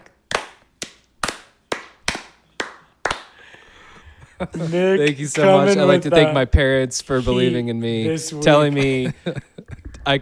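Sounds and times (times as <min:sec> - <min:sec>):
crowd slow clap: 0:00.3 - 0:03.6
laughter: 0:04.1 - 0:06.3, 0:07.1 - 0:10.0
speech: 0:04.4 - 0:10.2.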